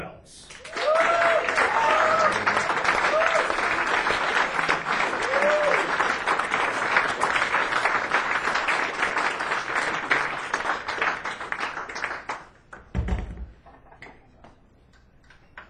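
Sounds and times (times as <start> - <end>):
crowd clapping for a performer's welcome: 0.5 - 12.9
crowd whooping and cheering: 0.6 - 6.3.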